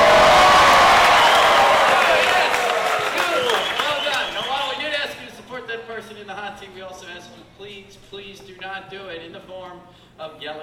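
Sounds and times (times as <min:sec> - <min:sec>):
whoops: 0:00.0 - 0:04.4
studio audience cheering and applauding: 0:00.0 - 0:04.9.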